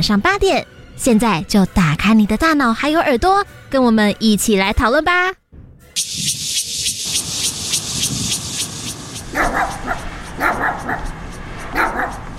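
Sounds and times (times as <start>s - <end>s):
speech: 0.0s - 5.4s, 9.4s - 11.2s
steady high hiss: 6.0s - 10.4s
dog barking in the middle of the night: 9.2s - 12.3s.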